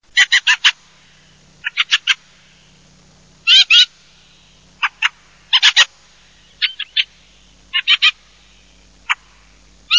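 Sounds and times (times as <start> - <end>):
fieldfare calls: 0.1 - 9.9.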